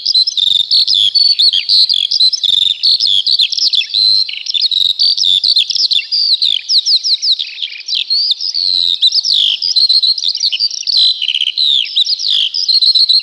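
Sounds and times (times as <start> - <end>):
Eurasian skylark singing: 0.0 - 13.2.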